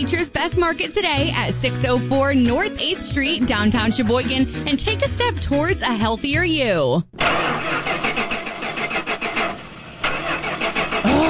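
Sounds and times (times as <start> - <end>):
speech: 0.0 - 7.4
car engine failing to start: 7.1 - 11.2.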